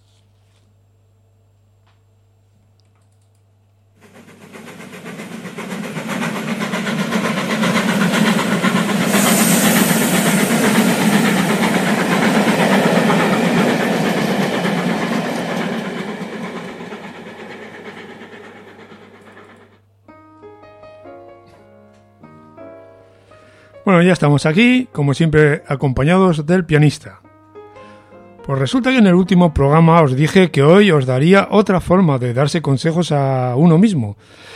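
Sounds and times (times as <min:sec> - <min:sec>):
train running on rails: 0:04.0 - 0:19.9
speech: 0:24.0 - 0:27.2, 0:28.5 - 0:34.5.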